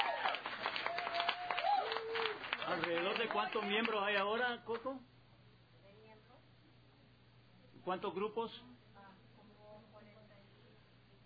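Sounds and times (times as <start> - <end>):
audience applause: 0.0 - 4.3
speech: 3.3 - 5.1, 7.8 - 8.8.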